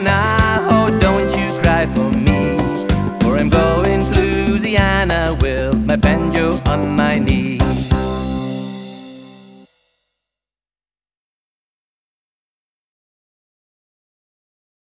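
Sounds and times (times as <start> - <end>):
ukulele playing a folk tune: 0.0 - 8.2.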